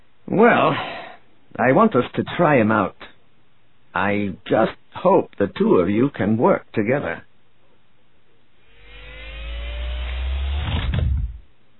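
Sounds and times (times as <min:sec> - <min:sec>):
speech: 0:00.4 - 0:03.1, 0:03.9 - 0:07.3
spacecraft thrust engines igniting: 0:08.7 - 0:11.4.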